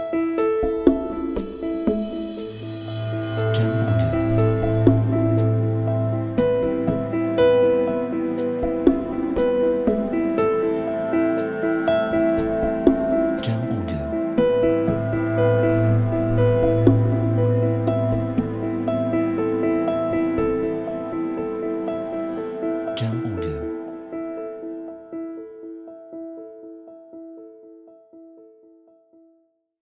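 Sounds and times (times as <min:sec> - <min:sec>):
landscape atmosphere: 0:00.0 - 0:25.1.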